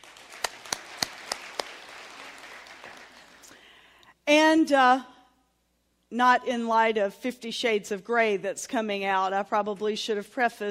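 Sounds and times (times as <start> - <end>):
audience clapping: 0.0 - 3.7
speech: 4.3 - 5.1, 6.1 - 10.6.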